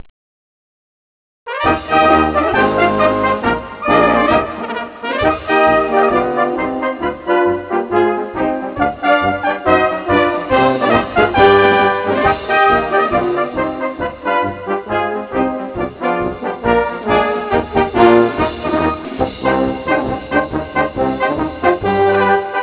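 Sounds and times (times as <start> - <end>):
march music: 1.5 - 22.6.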